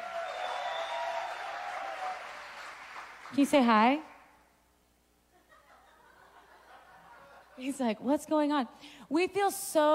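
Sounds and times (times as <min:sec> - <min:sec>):
audience cheering and applause: 0:00.0 - 0:03.4
speech: 0:03.3 - 0:04.1, 0:07.6 - 0:09.9
laughter: 0:05.4 - 0:07.8.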